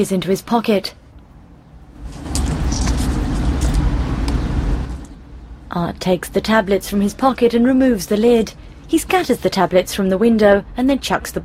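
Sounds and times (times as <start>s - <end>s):
speech: 0.0s - 1.0s, 5.7s - 11.4s
car being driven down a street: 1.3s - 5.7s.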